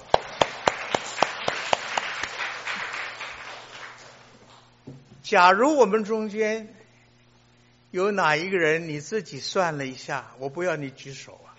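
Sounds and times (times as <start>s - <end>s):
audience applause: 0.0s - 4.5s
speech: 5.3s - 6.8s, 7.9s - 11.5s.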